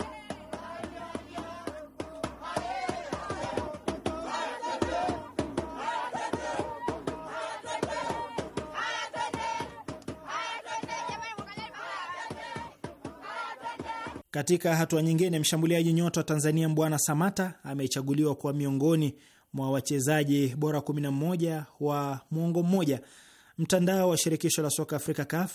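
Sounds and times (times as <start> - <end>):
crowd cheering after a football win by Tembo Warriors: 0.0 - 14.2
speech: 14.4 - 25.5.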